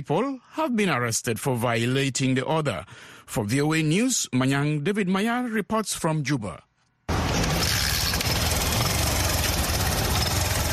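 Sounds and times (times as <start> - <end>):
speech: 0.0 - 6.7
car engine idling at petrol station: 7.1 - 10.7.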